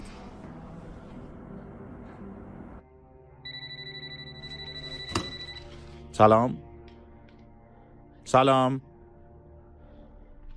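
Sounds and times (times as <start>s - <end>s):
telephone ringing: 3.5s - 5.8s
speech: 6.2s - 6.7s, 8.3s - 8.9s.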